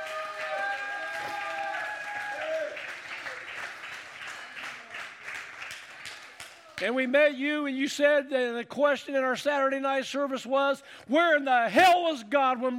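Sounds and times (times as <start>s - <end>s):
audience cheering: 0.0s - 5.0s
audience applauding: 0.0s - 6.8s
speech: 6.8s - 12.7s.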